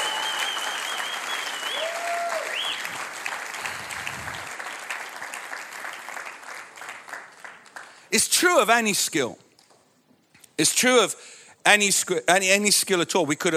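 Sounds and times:
audience applause: 0.0 - 8.1
speech: 8.1 - 9.4, 10.6 - 13.5.

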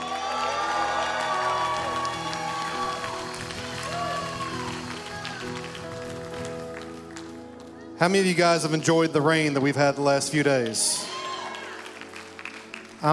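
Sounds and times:
audience shouting praise and cheering: 0.0 - 6.0, 10.8 - 12.1
speech: 8.0 - 11.1.

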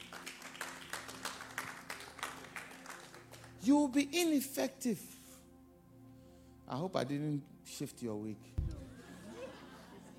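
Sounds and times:
audience clapping: 0.0 - 3.7
speech: 3.6 - 5.2, 6.7 - 8.6
laughter: 8.7 - 10.1.

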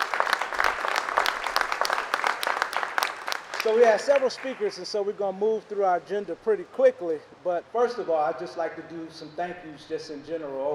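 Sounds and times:
crowd applauding: 0.0 - 4.8
speech: 3.6 - 10.7.

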